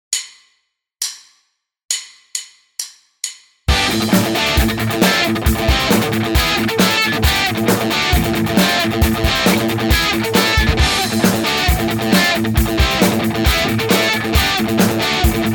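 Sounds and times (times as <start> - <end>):
guitar riff: 3.7 - 15.5.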